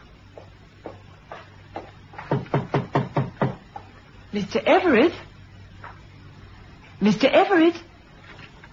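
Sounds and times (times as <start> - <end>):
deed box clunking and knocking as it is handled: 2.2 - 3.7
speech: 4.4 - 5.3, 7.0 - 7.9.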